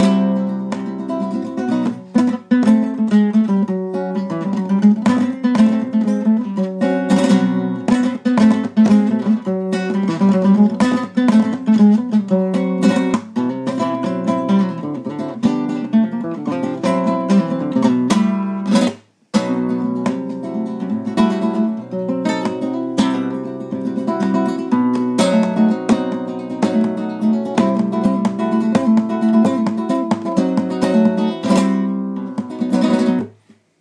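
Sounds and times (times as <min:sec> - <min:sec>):
flamenco music: 0:00.0 - 0:33.5.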